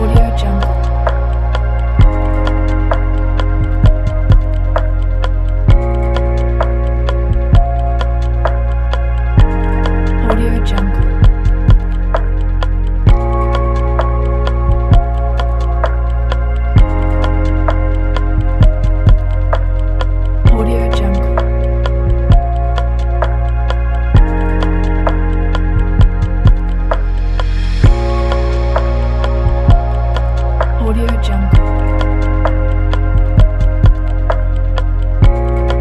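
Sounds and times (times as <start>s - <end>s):
ambient chill electronic music: 0.0s - 35.8s.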